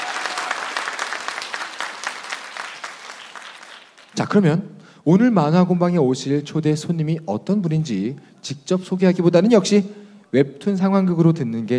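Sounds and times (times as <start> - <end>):
audience applause: 0.0 - 4.2
speech: 4.2 - 11.7.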